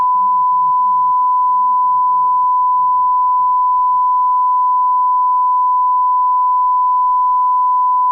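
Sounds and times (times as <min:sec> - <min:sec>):
94dB calibration tone: 0:00.0 - 0:08.1.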